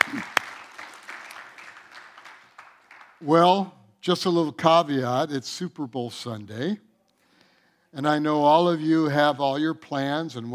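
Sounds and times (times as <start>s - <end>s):
crowd clapping: 0.0s - 3.4s
speech: 3.2s - 6.9s, 7.9s - 10.5s.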